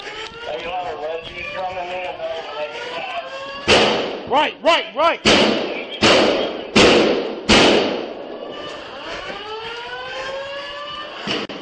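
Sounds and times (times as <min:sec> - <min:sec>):
gunshot: 0:03.7 - 0:04.3, 0:05.2 - 0:08.3, 0:11.3 - 0:11.6
speech: 0:04.3 - 0:05.7.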